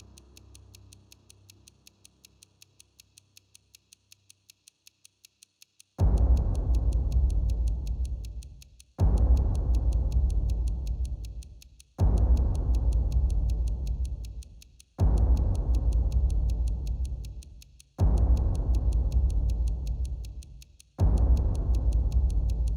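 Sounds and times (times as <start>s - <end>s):
epic hybrid underscore music: 6.0s - 22.7s.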